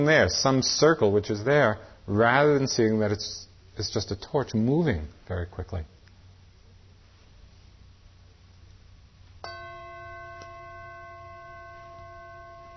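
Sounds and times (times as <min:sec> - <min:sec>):
speech: 0:00.0 - 0:05.9
meditation bell ringing: 0:09.4 - 0:12.7.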